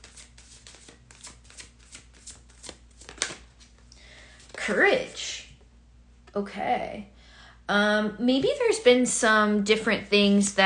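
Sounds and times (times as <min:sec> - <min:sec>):
tarot cards being shuffled for a reading: 0:00.0 - 0:04.7
speech: 0:04.7 - 0:05.3, 0:06.3 - 0:07.1, 0:07.7 - 0:10.6.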